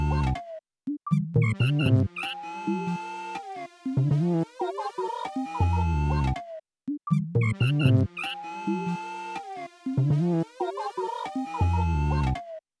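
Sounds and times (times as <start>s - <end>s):
synth pads: 1.4s - 6.3s, 7.4s - 12.2s.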